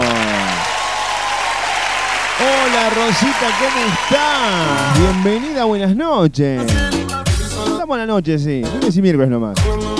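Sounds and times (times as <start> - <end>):
applause: 0.0 - 5.6
speech: 2.9 - 6.9, 7.8 - 9.9.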